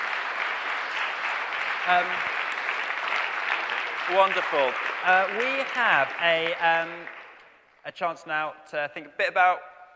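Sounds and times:
round of applause: 0.0 - 7.9
speech: 1.9 - 2.3, 4.1 - 7.2, 7.8 - 9.9.

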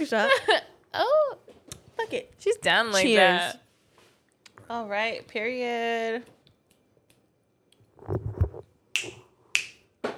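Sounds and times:
speech: 0.0 - 1.1, 2.1 - 3.6, 4.7 - 6.4
dull low thumps and rustling: 8.0 - 8.7
loud finger snaps: 9.0 - 10.1.

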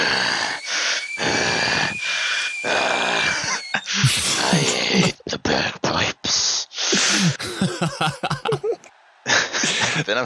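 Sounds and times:
thin high whine: 0.0 - 5.1
person imitating heavy hissing breaths: 0.0 - 5.2, 6.8 - 8.7
laughter: 3.5 - 5.4, 7.0 - 10.2.

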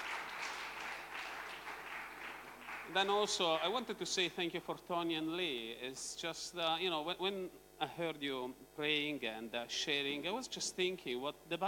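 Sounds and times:
group applauding: 0.0 - 4.0
speech: 2.9 - 11.6.

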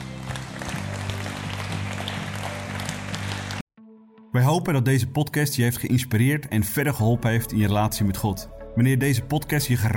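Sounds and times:
audience applause: 0.0 - 3.6
speech: 4.4 - 9.9.

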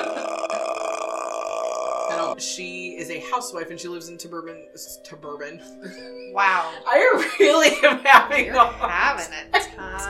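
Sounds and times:
person imitating the Grudge ghost's creepy croak: 0.0 - 2.4
speech: 2.4 - 10.0.

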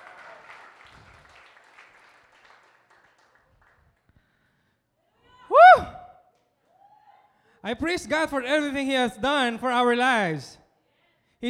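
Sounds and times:
crowd applauding: 0.0 - 4.1
cheers and shouts: 5.3 - 6.1
speech: 7.6 - 10.6.

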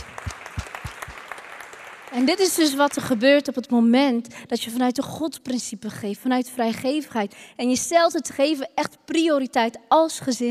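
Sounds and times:
applause: 0.0 - 3.5
speech: 2.1 - 10.4.

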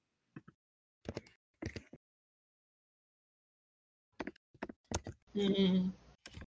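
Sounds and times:
computer keyboard typing while looking up game rules: 1.1 - 2.0, 4.2 - 5.2, 6.2 - 6.5
person speaking: 5.4 - 6.0.

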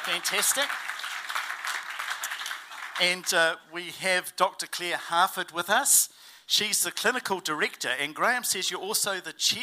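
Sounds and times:
audience applause: 0.0 - 3.4
speech: 0.1 - 0.9, 3.0 - 9.6.

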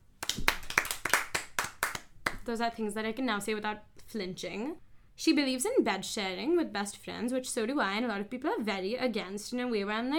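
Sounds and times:
hands clapping: 0.2 - 2.5
speech: 2.4 - 10.1.

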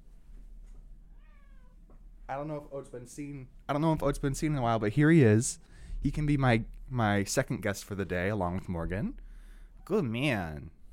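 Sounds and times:
low hum: 0.0 - 10.9
cat meowing and yowling: 1.1 - 1.9
speech: 2.3 - 9.2, 9.8 - 10.8.

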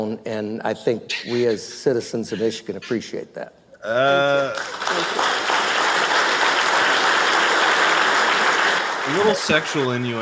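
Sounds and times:
speech: 0.0 - 5.5, 9.1 - 10.1
audience applause: 4.5 - 10.1.

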